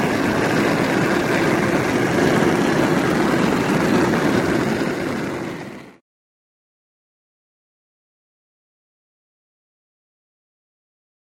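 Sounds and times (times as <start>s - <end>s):
gas fire igniting: 0.0s - 6.0s.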